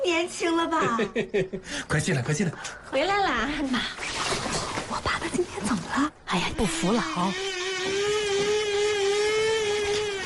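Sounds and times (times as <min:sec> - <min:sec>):
speech: 0:00.2 - 0:04.2, 0:05.2 - 0:08.0
coffee machine whirring: 0:07.1 - 0:10.2.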